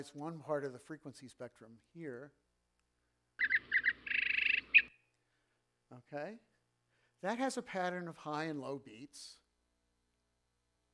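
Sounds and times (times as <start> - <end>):
speech: 0.0 - 2.4, 5.9 - 6.5, 7.2 - 9.4
zebra finch song: 3.4 - 5.0.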